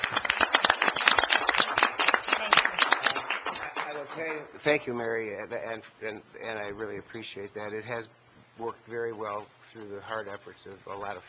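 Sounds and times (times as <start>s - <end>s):
audience applause: 0.0s - 4.5s
speech: 4.4s - 11.2s.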